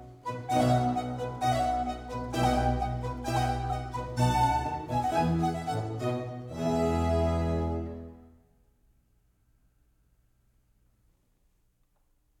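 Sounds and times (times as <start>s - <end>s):
recorder concerto in F major: 0.0s - 8.3s.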